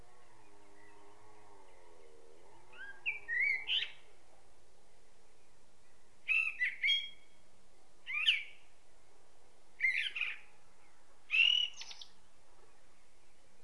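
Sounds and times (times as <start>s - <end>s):
common blackbird singing: 0.0s - 4.1s, 5.4s - 7.4s, 8.0s - 8.7s, 9.8s - 13.6s.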